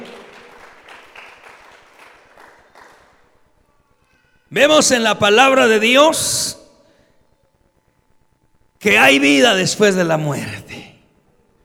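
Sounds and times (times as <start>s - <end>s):
crowd applauding: 0.0s - 3.6s
speech: 4.5s - 6.6s, 8.8s - 10.6s.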